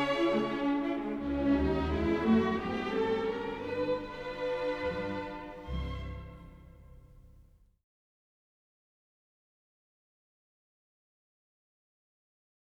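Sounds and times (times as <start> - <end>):
symphonic fairy tale music: 0.0 - 7.4.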